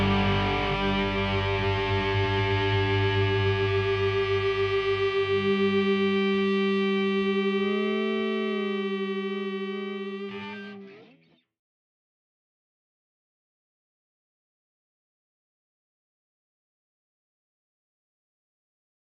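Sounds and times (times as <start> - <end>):
guitars: 0.0 - 11.5.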